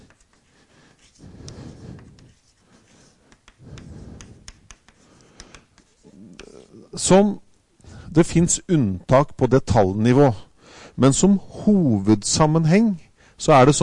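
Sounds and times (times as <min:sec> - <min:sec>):
pen or chalk scratching across a writing surface: 0:00.0 - 0:06.4
speech: 0:07.0 - 0:07.4, 0:08.2 - 0:10.4, 0:11.0 - 0:13.8.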